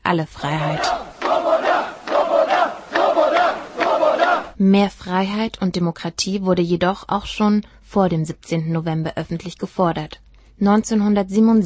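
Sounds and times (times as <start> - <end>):
speech: 0.1 - 1.0, 4.6 - 11.6
crowd of protesters at mass demonstration: 0.6 - 4.6.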